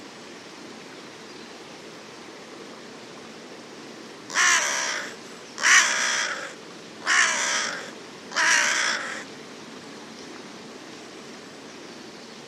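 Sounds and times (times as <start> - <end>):
bird cawing: 4.3 - 9.3.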